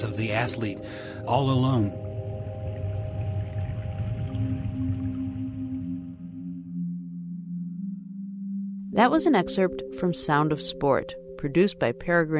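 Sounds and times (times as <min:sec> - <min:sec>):
speech: 0:00.2 - 0:02.0, 0:09.0 - 0:12.3
underwater bubbles: 0:00.8 - 0:07.0.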